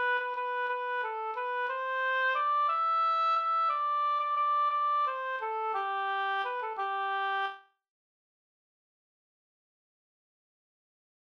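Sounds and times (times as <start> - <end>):
folk dance march in G major: 0.0 - 7.6.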